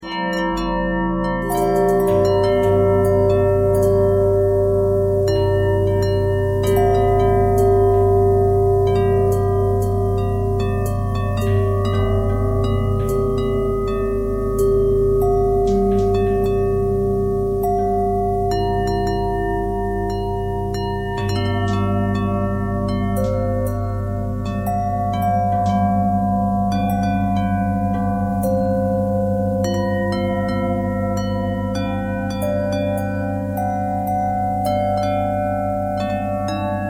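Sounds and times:
bent and twisted bell tone: 0.0s - 36.8s.

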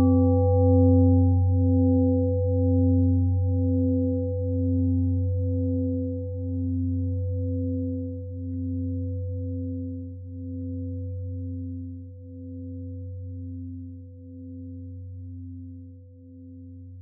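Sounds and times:
pentatonic bell melody: 0.0s - 11.6s.

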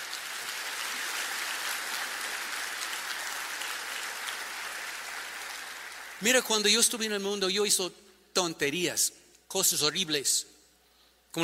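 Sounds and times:
audience applause: 0.0s - 6.2s
speech: 6.2s - 10.5s.

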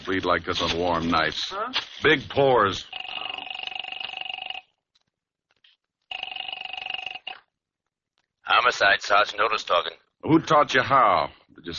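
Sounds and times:
speech: 0.1s - 3.0s, 8.7s - 11.7s
telephone ringing: 2.8s - 4.8s, 6.1s - 7.5s.

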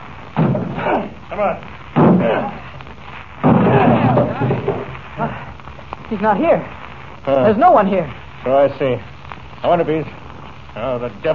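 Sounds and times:
door being broken down: 0.4s - 0.8s, 2.0s - 2.4s, 3.4s - 4.9s
speech: 1.3s - 2.6s, 6.1s - 10.2s, 10.8s - 11.3s.

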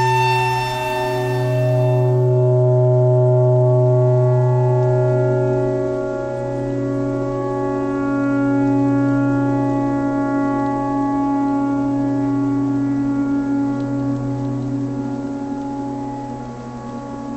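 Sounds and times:
clarinet: 0.0s - 3.0s
tornado siren: 0.0s - 17.3s.

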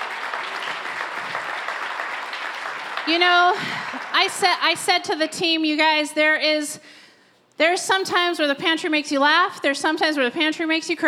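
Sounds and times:
crowd applause: 0.0s - 5.1s
speech: 3.1s - 7.0s, 7.6s - 11.0s.

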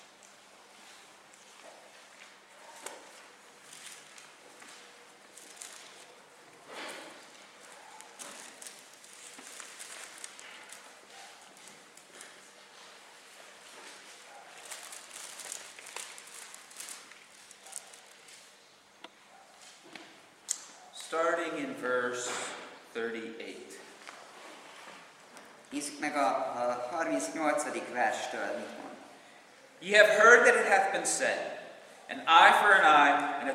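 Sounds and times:
Bible pages being turned to Matthew chapter 5: 1.3s - 18.6s
speech: 21.1s - 23.8s, 25.7s - 28.9s, 29.8s - 33.5s.

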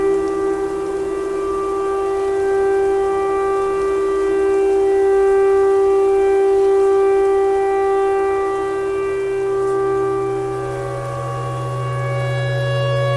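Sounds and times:
clarinet: 0.0s - 13.1s
tornado siren: 10.0s - 13.1s.

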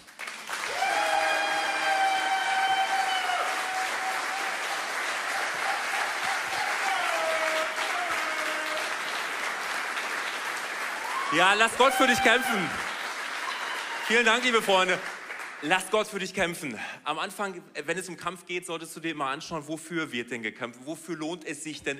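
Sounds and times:
audience clapping: 0.0s - 16.4s
speech: 11.3s - 12.9s, 14.1s - 21.9s.

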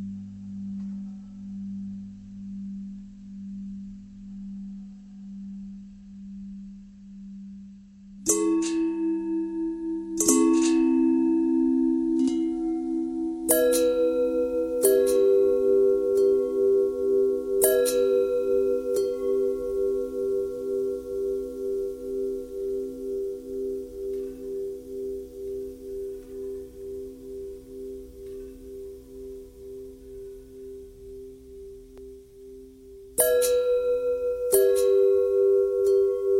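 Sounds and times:
long pentatonic bell tones: 8.3s - 36.3s.

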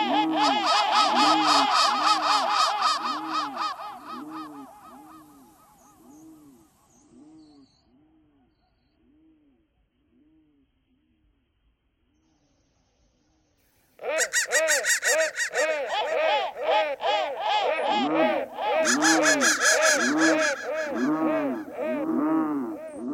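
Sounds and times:
crow cawing: 0.2s - 4.4s, 14.1s - 23.0s.

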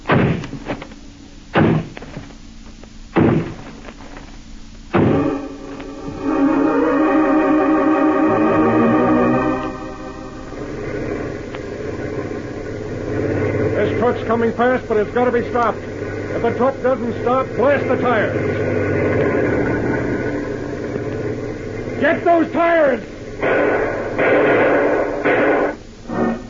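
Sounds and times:
door being battered with heavy booming blows: 0.0s - 0.7s, 1.6s - 2.2s, 3.2s - 3.7s, 4.9s - 5.4s
loud sustained droning tonal sound: 0.0s - 26.4s
speech: 14.3s - 18.8s, 22.0s - 24.6s.

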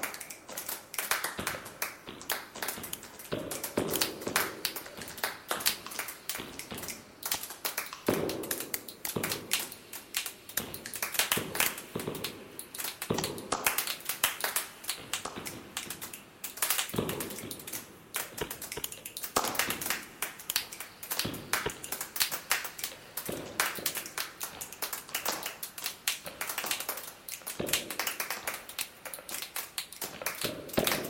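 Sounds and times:
clapping: 0.0s - 31.0s.

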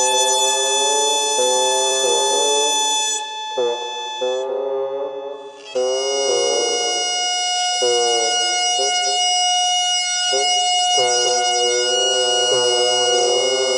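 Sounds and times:
radio noise: 0.0s - 7.1s, 7.8s - 9.3s, 10.3s - 13.7s
bagpipe: 0.0s - 13.7s.

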